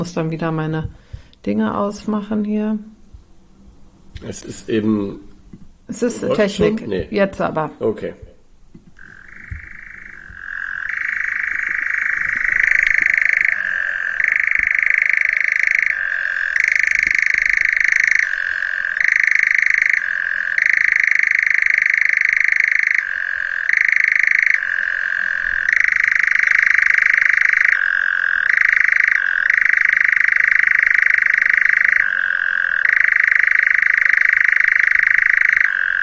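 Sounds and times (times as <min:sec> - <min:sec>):
speech: 0:00.0 - 0:03.0, 0:04.2 - 0:05.3, 0:05.9 - 0:08.3
European nightjar churring call: 0:09.0 - 0:36.0.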